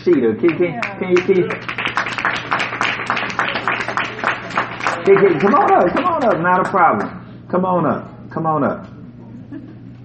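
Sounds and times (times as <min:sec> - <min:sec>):
speech: 0:00.0 - 0:01.7, 0:05.0 - 0:08.9
audience applause: 0:00.8 - 0:07.1.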